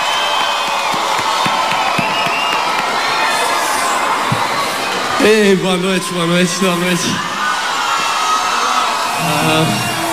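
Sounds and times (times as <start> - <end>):
audience applause: 0.0 - 10.1
speech: 5.2 - 7.3, 9.2 - 9.9.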